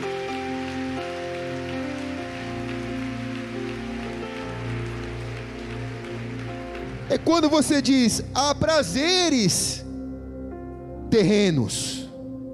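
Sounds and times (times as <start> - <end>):
audience applause: 0.0 - 8.3
keyboard chords: 0.0 - 12.5
speech: 7.1 - 9.8, 11.1 - 12.0.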